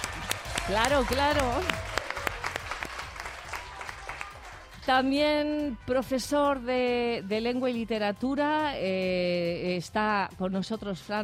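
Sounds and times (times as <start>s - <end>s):
audience clapping: 0.0s - 4.8s
speech: 0.7s - 1.9s, 4.8s - 11.2s.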